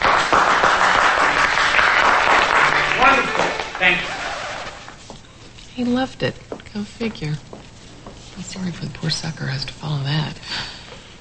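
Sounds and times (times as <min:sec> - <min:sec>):
applause after a recited verse speech: 0:00.0 - 0:05.0
speech: 0:03.9 - 0:04.1, 0:05.8 - 0:07.5, 0:08.4 - 0:10.8.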